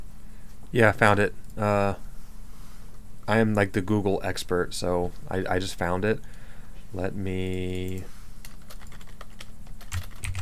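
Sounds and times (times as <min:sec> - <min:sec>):
speech: 0:00.7 - 0:02.0, 0:03.3 - 0:08.2
typing on a computer keyboard: 0:07.7 - 0:10.4.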